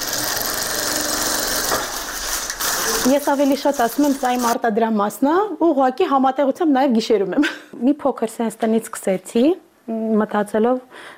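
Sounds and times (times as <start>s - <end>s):
sewing machine clattering in a cramped Yerevan apartment: 0.0s - 4.6s
speech: 3.0s - 11.1s.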